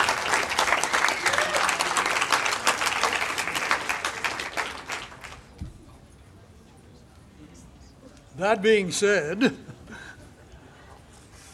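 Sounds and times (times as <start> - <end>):
audience applause: 0.0 - 5.5
speech: 8.4 - 9.6.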